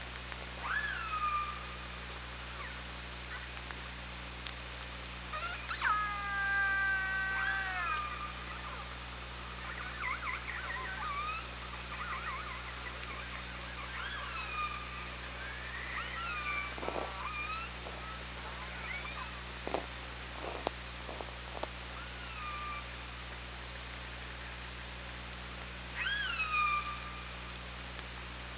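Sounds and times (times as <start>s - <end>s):
steady low hum: 0.0s - 28.5s
killer whale calls: 0.6s - 1.6s, 5.4s - 8.9s, 9.6s - 19.4s.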